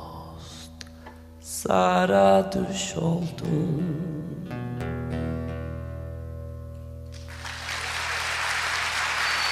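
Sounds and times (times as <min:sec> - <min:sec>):
speech: 0:01.6 - 0:04.6
audience applause: 0:07.2 - 0:09.5.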